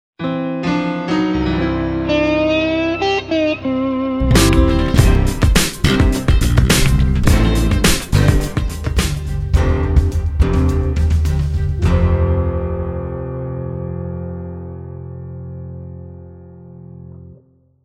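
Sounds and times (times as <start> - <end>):
blues music: 0.6 - 13.2.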